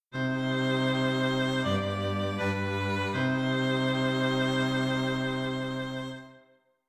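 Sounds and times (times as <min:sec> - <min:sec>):
string quartet: 0:00.2 - 0:06.4.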